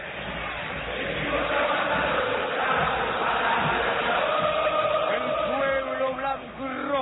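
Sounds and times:
stadium crowd chanting at the Monumental: 0:00.0 - 0:07.0.

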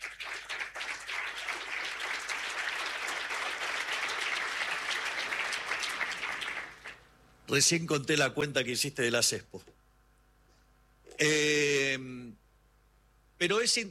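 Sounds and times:
audience applause: 0:00.0 - 0:07.1
speech: 0:07.5 - 0:09.7, 0:11.2 - 0:12.2, 0:13.4 - 0:13.8.

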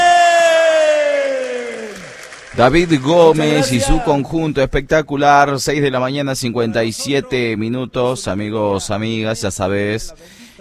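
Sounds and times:
crowd applause and cheering: 0:00.0 - 0:04.3
speech: 0:02.6 - 0:10.4.

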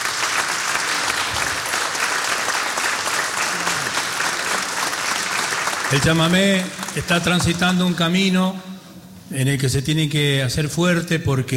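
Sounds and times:
audience applause: 0:00.0 - 0:07.8
speech: 0:05.9 - 0:08.7, 0:09.3 - 0:11.5.

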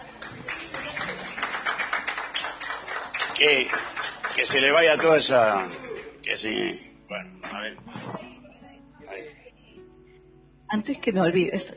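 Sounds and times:
audience applause: 0:00.0 - 0:05.8
speech: 0:03.4 - 0:08.2, 0:10.7 - 0:11.7.

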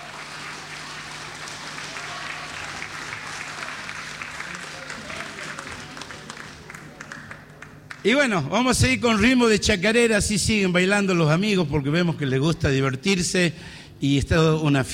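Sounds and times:
audience applause: 0:00.0 - 0:08.0
speech: 0:08.0 - 0:14.9.

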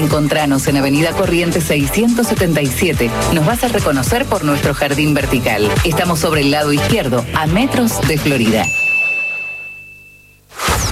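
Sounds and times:
speech: 0:00.0 - 0:08.8
boxing ring bell: 0:08.6 - 0:10.5.

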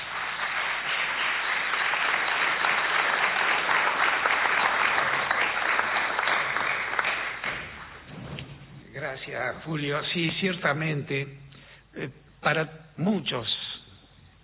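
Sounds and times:
audience applause: 0:00.0 - 0:08.1
speech: 0:09.3 - 0:11.4, 0:12.0 - 0:13.6.

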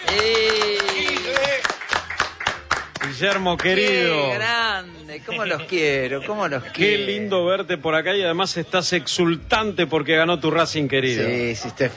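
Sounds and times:
studio audience clapping welcoming a guest on a TV show: 0:00.0 - 0:04.3
speech: 0:03.2 - 0:11.9.

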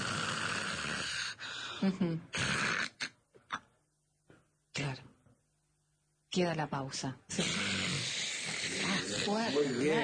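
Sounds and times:
person imitating snoring: 0:00.0 - 0:01.4, 0:02.3 - 0:03.2, 0:07.3 - 0:10.0
speech: 0:01.8 - 0:02.4, 0:06.4 - 0:07.7, 0:09.2 - 0:10.0.

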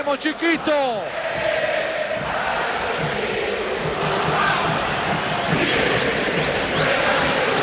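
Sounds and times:
football stadium crowd chanting at River ground: 0:00.0 - 0:07.6.

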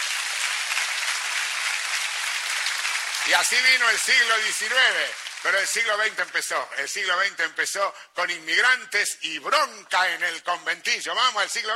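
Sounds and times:
crowd applause: 0:00.0 - 0:06.1
speech: 0:03.3 - 0:11.7.

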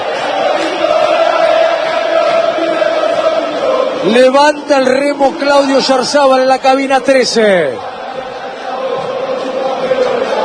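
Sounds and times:
stadium crowd cheering: 0:00.0 - 0:10.4
speech: 0:04.0 - 0:07.9.

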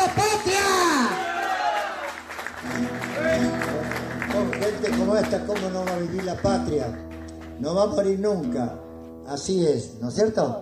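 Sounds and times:
audience applause: 0:00.4 - 0:07.5
tonal musical layer: 0:02.0 - 0:10.6
speech: 0:05.1 - 0:10.6.

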